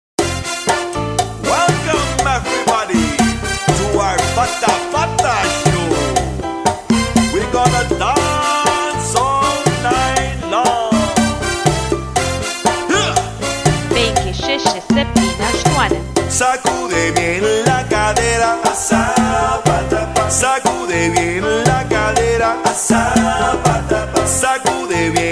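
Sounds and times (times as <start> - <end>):
Cuban cha cha music: 0.2 - 25.3.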